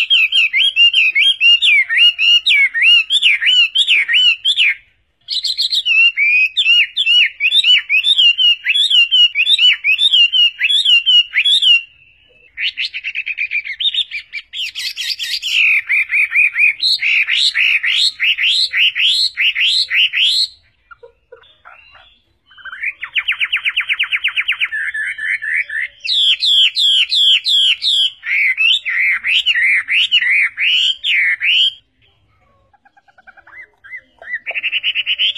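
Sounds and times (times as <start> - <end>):
Chinese hwamei whistling song: 0.0 - 31.9, 33.1 - 35.3.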